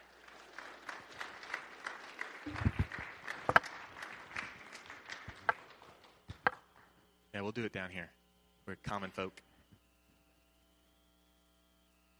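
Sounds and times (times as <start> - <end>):
audience applause: 0.0 - 6.6
speech: 7.4 - 9.5.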